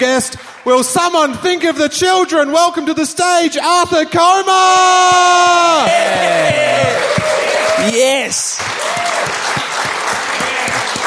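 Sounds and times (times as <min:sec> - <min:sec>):
speech: 0:00.0 - 0:09.4
audience applause: 0:05.7 - 0:11.0.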